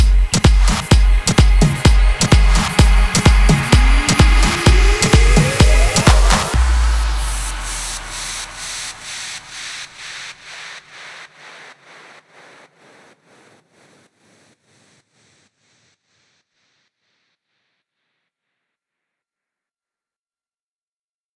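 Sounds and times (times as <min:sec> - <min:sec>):
dutch house music: 0:00.0 - 0:15.4.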